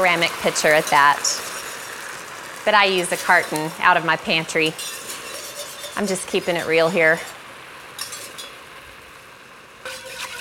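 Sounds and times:
speech: 0.0 - 1.5, 2.6 - 5.1, 6.0 - 7.3
faint sizzling: 0.0 - 10.3
utensil scraping the bottom of a pan while deglazing with beef broth: 0.2 - 2.2, 3.0 - 3.9, 4.5 - 7.4, 8.0 - 8.6, 9.8 - 10.3.

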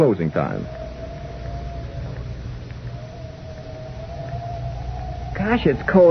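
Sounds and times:
speech: 0.0 - 0.8, 5.4 - 6.0
howling wind: 0.0 - 6.0.

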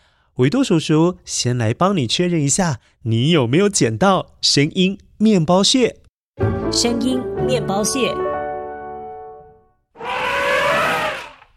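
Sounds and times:
speech: 0.4 - 8.3
elephant trumpeting: 10.0 - 11.5.

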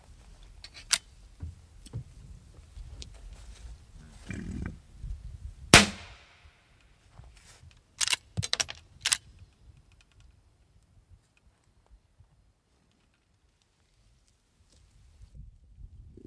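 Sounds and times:
quiet outdoor rustling: 0.0 - 15.4
rifle shot killing a bison during a field harvest: 5.7 - 6.4.

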